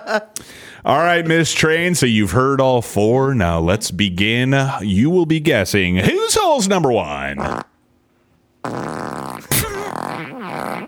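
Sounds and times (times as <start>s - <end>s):
speech: 0.0s - 7.7s, 8.6s - 9.2s
fart: 7.4s - 7.8s, 8.6s - 10.8s.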